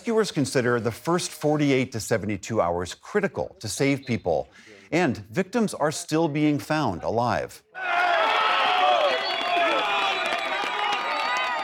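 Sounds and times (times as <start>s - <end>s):
speech: 0.1s - 8.1s
large crowd cheering and clapping after a rescue: 7.8s - 11.6s
many voices shouting: 7.8s - 11.6s.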